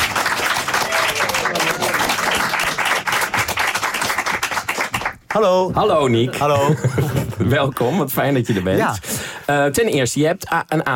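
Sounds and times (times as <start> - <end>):
audience applause: 0.0 - 5.4
faint voices or cheers: 0.7 - 2.4
speech: 5.4 - 10.9.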